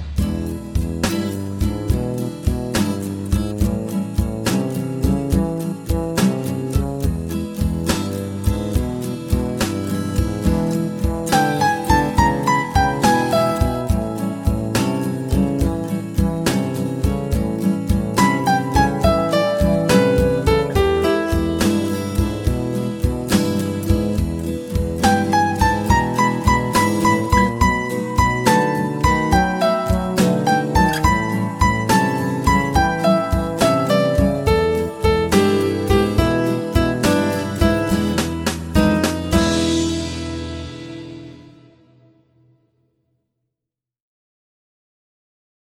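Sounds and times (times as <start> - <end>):
basic blues guitar: 0.2 - 42.1.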